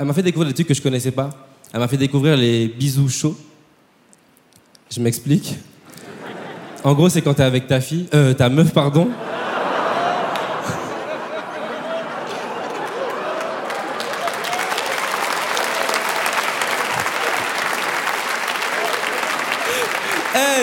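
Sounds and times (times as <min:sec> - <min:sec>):
speech: 0:00.0 - 0:03.5, 0:04.9 - 0:05.7, 0:06.8 - 0:09.4
laughter: 0:05.9 - 0:07.0, 0:09.0 - 0:17.9, 0:18.7 - 0:20.6
audience applause at a comedy show: 0:09.7 - 0:20.6.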